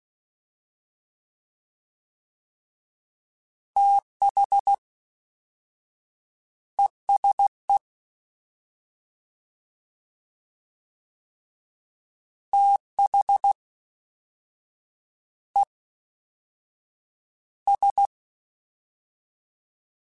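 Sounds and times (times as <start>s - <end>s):
fast CW Morse code groups: 3.8s - 4.8s, 7.1s - 7.8s, 12.6s - 13.6s, 17.7s - 18.1s.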